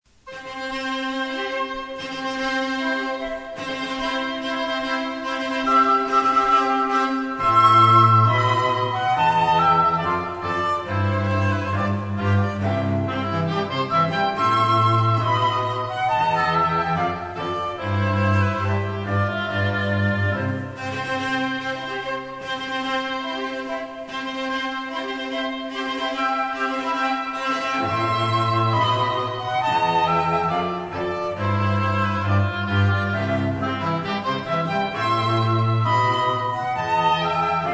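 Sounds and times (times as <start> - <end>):
cello trio playing a wedding march: 0.3 - 37.7.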